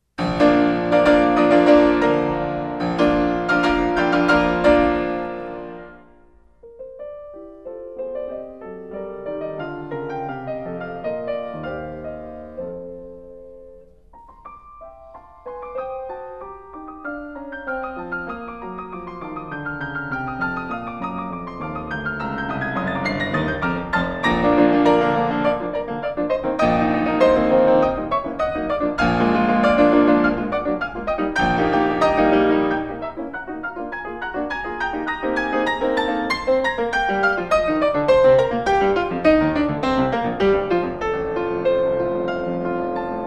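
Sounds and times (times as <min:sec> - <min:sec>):
piano sonata in B flat: 0:00.0 - 0:43.2.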